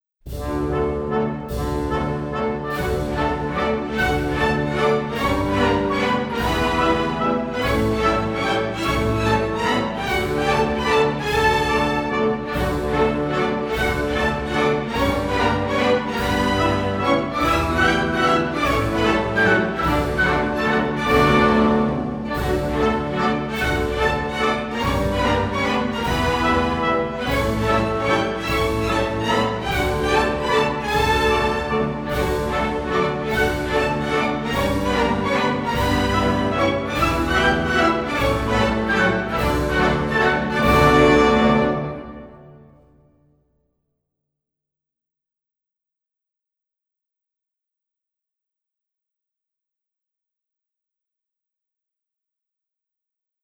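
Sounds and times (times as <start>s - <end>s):
waltz music: 0.3s - 42.9s.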